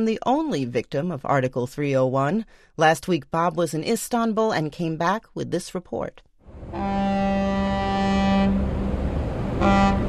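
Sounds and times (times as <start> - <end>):
speech: 0.0 - 7.0
ferry horn blasts: 6.6 - 10.0
ferry engine rumble and water: 8.5 - 10.0.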